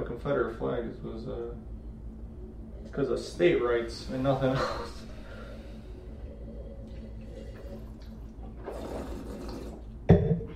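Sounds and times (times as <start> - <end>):
speech: 0.2 - 1.8, 2.8 - 5.1
person taking a big sip of drink: 6.6 - 10.0.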